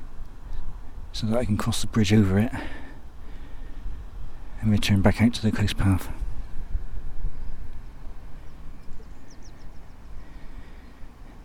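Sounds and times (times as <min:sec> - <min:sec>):
strong coastal wind buffeting the microphone: 0:00.0 - 0:11.4
speech: 0:01.2 - 0:02.8, 0:04.6 - 0:06.2
faint high bird chirps: 0:08.4 - 0:10.2.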